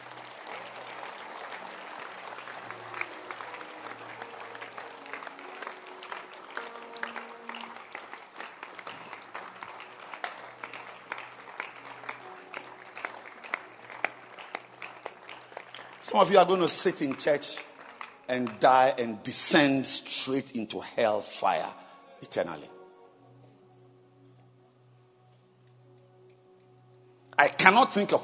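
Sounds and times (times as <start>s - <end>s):
audience clapping hands in welcome: 0.0s - 20.6s
speech: 16.1s - 17.7s, 18.3s - 22.8s, 27.6s - 28.2s.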